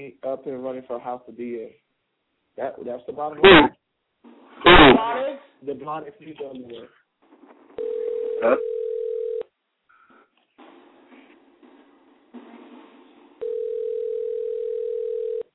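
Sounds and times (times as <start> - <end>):
speech: 0.0 - 1.9, 2.6 - 3.8, 4.8 - 7.0, 7.8 - 8.7
phone tone sounding: 7.8 - 9.4, 13.4 - 15.5.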